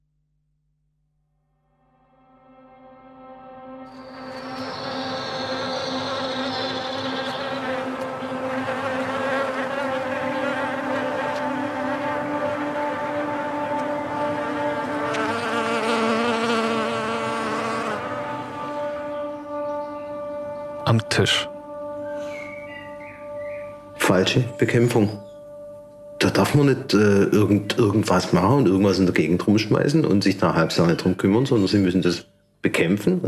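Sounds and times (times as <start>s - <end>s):
beetle buzzing: 3.9s - 20.8s
speech: 20.9s - 21.5s, 24.1s - 25.2s, 26.4s - 33.2s.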